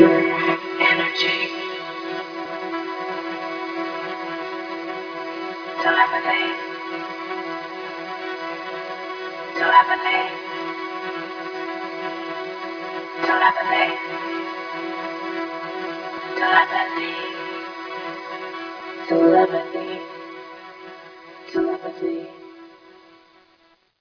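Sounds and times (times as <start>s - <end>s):
vocoder voice: 0.0s - 4.6s, 5.2s - 8.3s, 9.1s - 11.6s, 13.2s - 20.4s, 21.4s - 22.8s.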